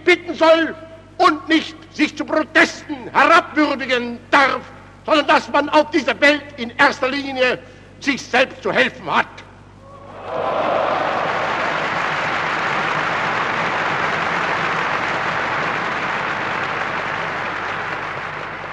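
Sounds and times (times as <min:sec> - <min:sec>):
speech: 0:00.1 - 0:09.4
audience applause: 0:10.2 - 0:18.7.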